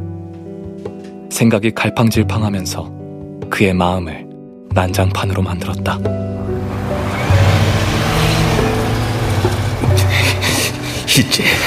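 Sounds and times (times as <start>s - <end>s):
speech: 1.4s - 6.5s, 11.2s - 11.6s
car engine revving to escape a pit: 6.3s - 10.8s.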